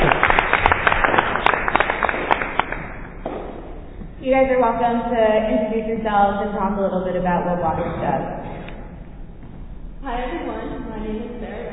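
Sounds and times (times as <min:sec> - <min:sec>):
audience applauding: 0:00.0 - 0:03.1
speech: 0:04.3 - 0:08.5.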